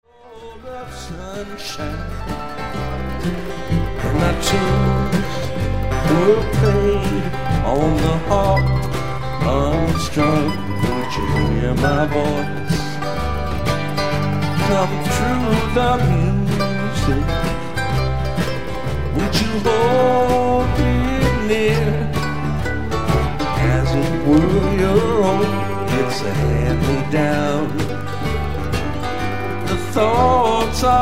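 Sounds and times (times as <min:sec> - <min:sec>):
acoustic music: 0:00.1 - 0:31.0.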